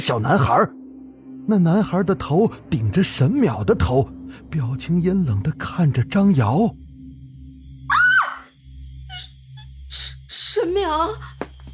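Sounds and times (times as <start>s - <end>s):
speech: 0.0s - 0.8s, 1.5s - 6.8s, 9.9s - 11.3s
man screaming in fright: 7.9s - 8.5s.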